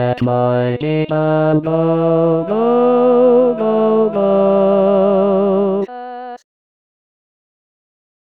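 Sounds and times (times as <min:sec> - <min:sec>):
tenor voice: 0:01.1 - 0:05.9.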